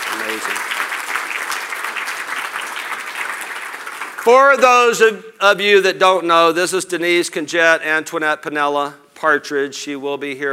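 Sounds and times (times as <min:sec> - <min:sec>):
crowd applauding: 0:00.0 - 0:05.0
speech: 0:00.3 - 0:00.8, 0:04.2 - 0:10.5.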